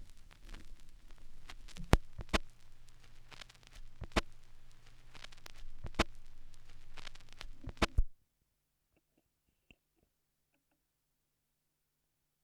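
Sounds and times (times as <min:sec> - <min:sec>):
vinyl record noise: 0:00.0 - 0:08.2.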